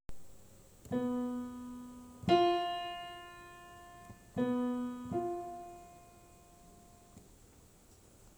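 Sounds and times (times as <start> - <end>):
diminished fifth interval: 0.9 - 7.2.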